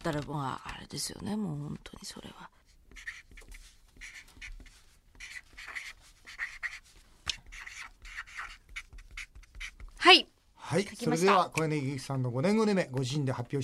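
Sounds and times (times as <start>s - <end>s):
speech: 0.0s - 3.3s, 10.1s - 13.6s
writing on a shikishi autograph board: 2.9s - 10.1s.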